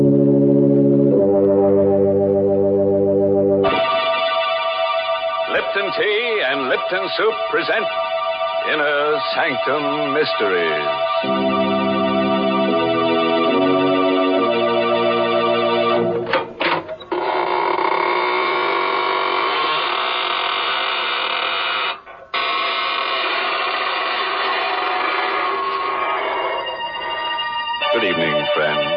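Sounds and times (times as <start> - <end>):
sustained organ-like tones: 0.0 - 18.7, 19.6 - 28.9
speech: 6.0 - 8.1, 8.7 - 11.7
creaking door opening: 16.2 - 27.4.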